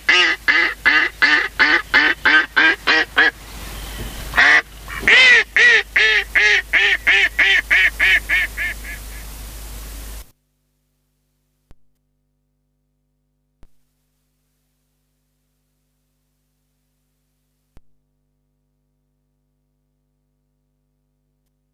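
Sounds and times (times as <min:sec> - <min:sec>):
mallard quacking: 0:00.0 - 0:09.3.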